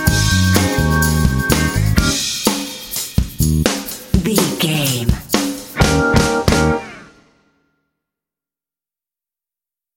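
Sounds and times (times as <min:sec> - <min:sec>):
feel-good funk music: 0:00.0 - 0:06.8.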